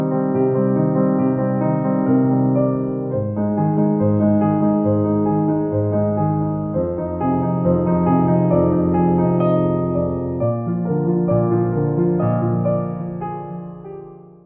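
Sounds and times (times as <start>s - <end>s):
piano arpeggios: 0.0s - 14.4s.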